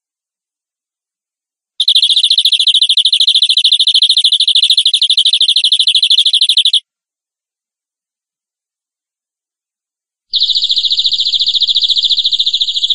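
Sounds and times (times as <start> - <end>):
canary trilling: 1.8 - 6.8, 10.3 - 12.9.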